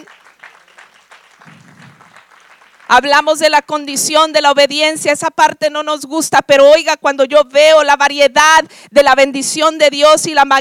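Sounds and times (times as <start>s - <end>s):
audience applauding: 0.0s - 3.2s
speech: 2.9s - 10.6s.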